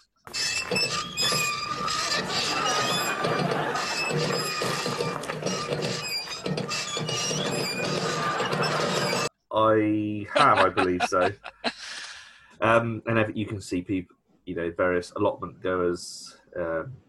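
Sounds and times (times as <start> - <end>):
squeaky wheelbarrow wheel squealing while pushed: 0.2 - 9.3
speech: 0.7 - 1.1, 9.6 - 11.6, 12.6 - 17.0
laughter: 2.0 - 5.4, 7.9 - 9.3, 10.2 - 12.1.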